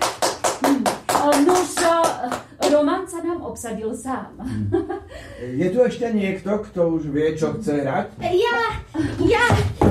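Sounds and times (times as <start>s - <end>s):
applause after a performer bows and jumps down from a stage: 0.0s - 2.8s
speech: 2.7s - 9.8s.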